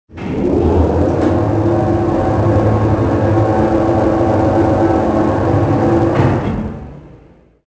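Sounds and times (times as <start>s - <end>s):
elevator: 0.1s - 7.4s.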